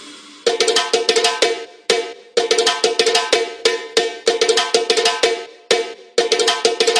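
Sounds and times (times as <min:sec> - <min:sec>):
drum rhythm in dance music: 0:00.0 - 0:06.9.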